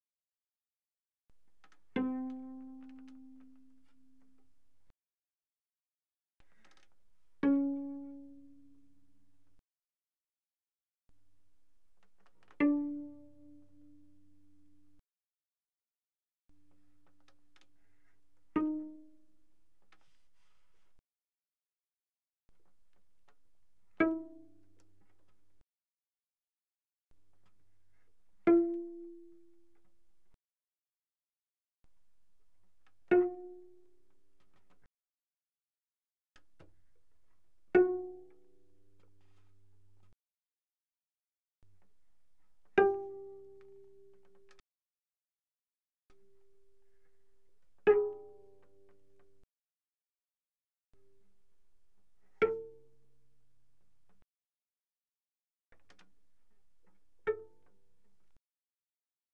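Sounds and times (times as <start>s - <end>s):
pianissimo cello pizzicato on the D string: 1.8s - 4.9s, 7.3s - 9.6s, 12.4s - 15.0s, 16.6s - 21.0s, 23.8s - 25.2s, 27.9s - 29.8s, 32.9s - 34.1s, 37.6s - 40.2s, 42.6s - 44.6s, 46.2s - 49.4s, 52.2s - 53.0s, 57.0s - 58.4s.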